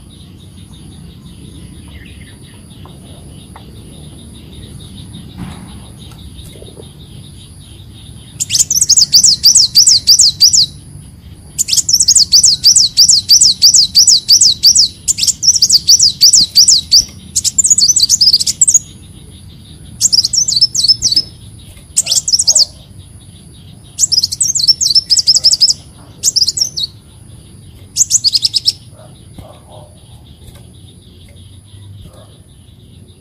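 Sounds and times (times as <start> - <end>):
leafbird song: 0.0 - 33.1.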